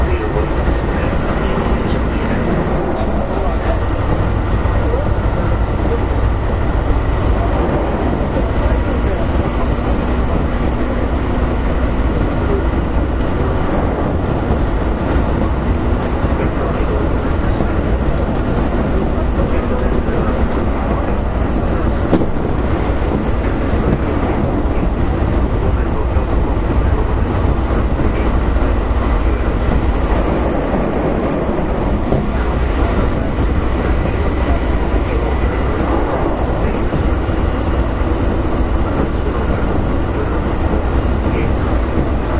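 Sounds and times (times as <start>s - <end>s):
Keihan Electric Railway 5000 series train running rumble: 0.0s - 42.3s
murmur of voices: 0.0s - 42.3s.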